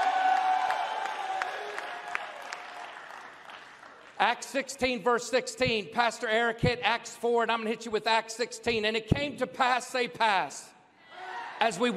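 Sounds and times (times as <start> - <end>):
audience applause: 0.0 - 4.2
speech: 4.2 - 10.7, 11.6 - 11.9.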